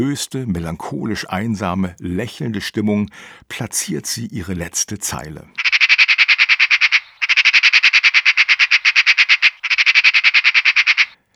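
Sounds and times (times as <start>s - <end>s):
speech: 0.0s - 5.6s
magpie screaming: 5.6s - 11.2s.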